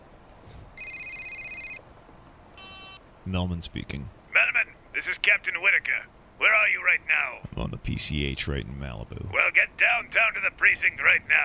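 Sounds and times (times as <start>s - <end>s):
telephone ringing: 0.8s - 1.8s, 2.6s - 3.0s
speech: 3.3s - 4.2s, 5.0s - 11.4s.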